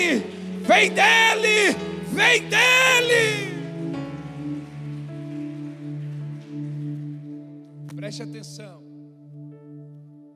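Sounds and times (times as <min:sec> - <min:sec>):
speech: 0:00.0 - 0:03.5, 0:08.1 - 0:08.8
audience applause: 0:00.0 - 0:07.4.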